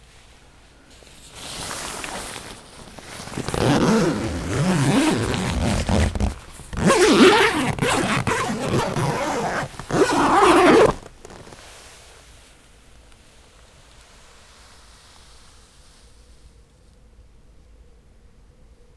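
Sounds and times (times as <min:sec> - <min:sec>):
zipper of double-door tent: 0:01.4 - 0:11.6.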